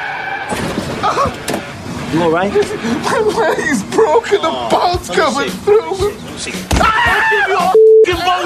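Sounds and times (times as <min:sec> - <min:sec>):
car crash sound effect: 0:00.2 - 0:01.7
speech: 0:02.1 - 0:08.4.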